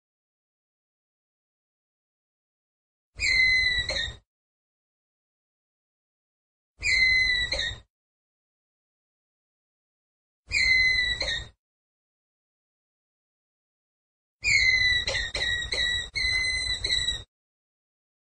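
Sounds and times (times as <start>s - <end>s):
ground squirrel whistled call: 3.2s - 4.2s, 6.8s - 7.8s, 10.5s - 11.5s, 14.4s - 17.3s.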